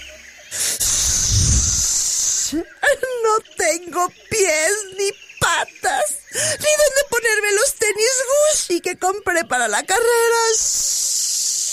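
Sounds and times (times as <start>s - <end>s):
snake hissing loudly: 0.5s - 2.8s, 10.5s - 11.7s
speech: 2.5s - 2.8s, 3.4s - 10.7s.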